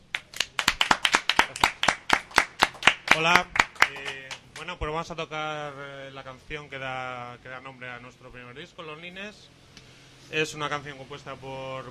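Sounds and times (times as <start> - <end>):
audience applause: 0.1 - 4.3
speech: 3.2 - 9.6, 10.3 - 11.8.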